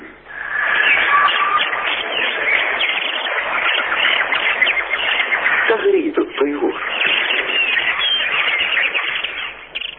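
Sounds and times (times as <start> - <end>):
radio interval signal: 0.5 - 9.8.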